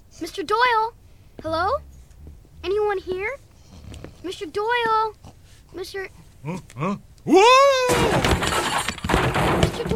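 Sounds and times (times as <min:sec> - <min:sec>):
speech: 0:00.2 - 0:01.9, 0:02.6 - 0:03.4, 0:04.2 - 0:08.2
person crying out: 0:06.5 - 0:08.2
breakaway prop chair breaking apart: 0:07.8 - 0:09.9.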